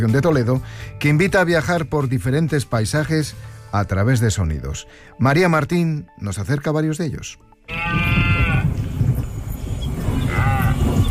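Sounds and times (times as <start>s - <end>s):
speech: 0.0s - 8.2s
red deer rutting bellow: 7.7s - 8.8s, 10.1s - 11.1s.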